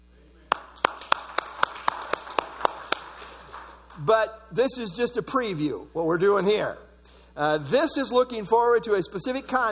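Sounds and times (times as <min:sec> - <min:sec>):
group clapping in unison: 0:00.5 - 0:04.1
speech: 0:04.0 - 0:09.6.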